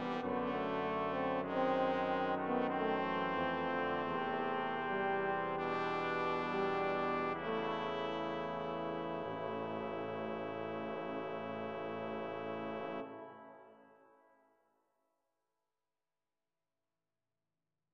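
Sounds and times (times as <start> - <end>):
brass quartet playing a canzona: 0.0 - 13.1.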